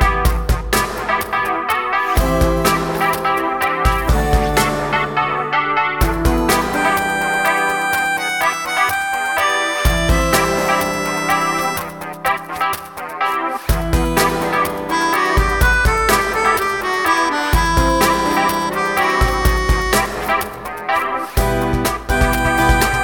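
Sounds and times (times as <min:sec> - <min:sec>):
acoustic music: 0:00.0 - 0:23.0.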